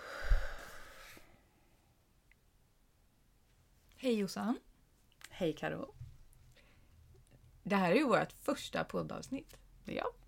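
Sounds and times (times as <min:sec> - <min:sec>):
deep breath: 0:00.0 - 0:01.9
speech: 0:04.0 - 0:04.7, 0:05.4 - 0:06.0, 0:07.6 - 0:10.2.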